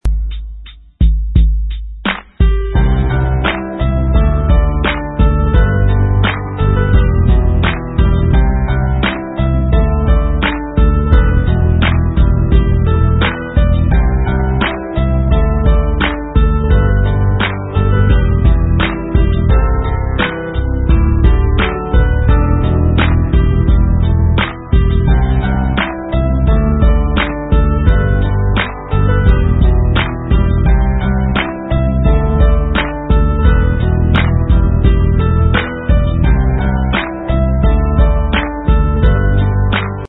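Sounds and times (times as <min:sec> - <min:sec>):
instrumental music: 0:00.0 - 0:40.0.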